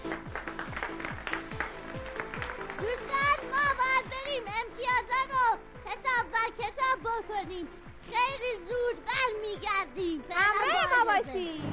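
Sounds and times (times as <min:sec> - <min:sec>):
audience applause: 0:00.0 - 0:04.2
speech: 0:04.6 - 0:11.7.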